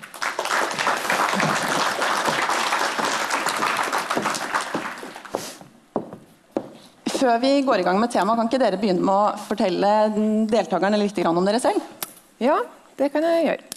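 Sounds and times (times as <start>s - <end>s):
audience clapping to welcome two guests at a live HR talk event: 0.0s - 5.6s
speech: 7.2s - 13.7s.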